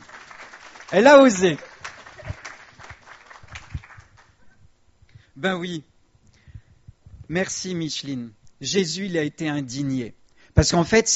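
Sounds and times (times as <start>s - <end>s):
audience applause: 0.0s - 4.4s
speech: 0.9s - 1.7s, 5.4s - 5.9s, 7.3s - 11.1s.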